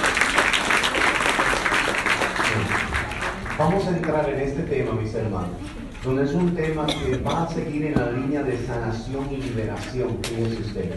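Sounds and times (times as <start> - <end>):
audience applauding: 0.0 - 4.3
speech: 3.6 - 10.9.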